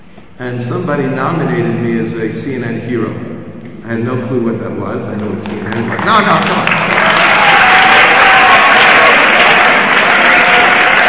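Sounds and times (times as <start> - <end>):
speech: 0.4 - 6.9
audience applause: 5.4 - 11.0.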